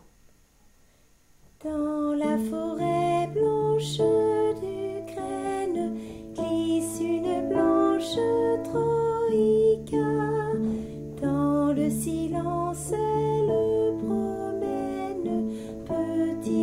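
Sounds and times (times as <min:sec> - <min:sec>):
soprano singing: 0:01.6 - 0:16.6.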